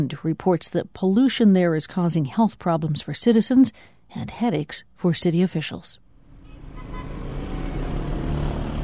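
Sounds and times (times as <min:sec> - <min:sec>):
speech: 0:00.0 - 0:06.0
congested city street traffic in Tehran: 0:06.1 - 0:08.8.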